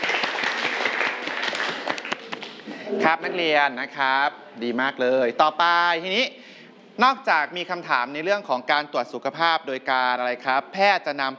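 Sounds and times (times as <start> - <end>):
students in a classroom clapping: 0.0 - 2.7
speech: 2.9 - 6.4, 7.0 - 11.3.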